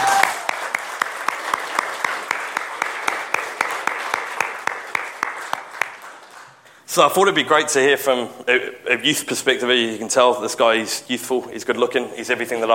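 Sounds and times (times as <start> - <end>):
audience applause: 0.0 - 6.6
speech: 6.9 - 12.7.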